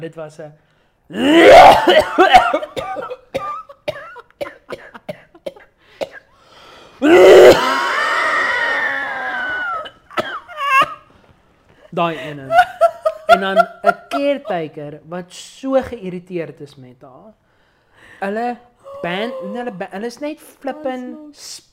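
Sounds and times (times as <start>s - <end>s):
speech: 0.0s - 3.1s, 12.0s - 12.7s, 13.4s - 17.4s, 18.2s - 21.7s
wheezing groan: 1.1s - 1.9s, 6.4s - 10.0s, 18.8s - 19.8s
person imitating an old smoker's heavy cough: 1.2s - 6.4s, 7.0s - 7.9s, 9.8s - 11.0s.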